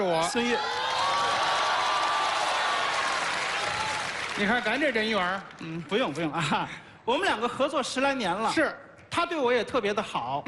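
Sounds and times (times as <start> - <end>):
speech: 0.0 - 0.8, 4.4 - 10.4
crowd audience applause: 0.5 - 6.3.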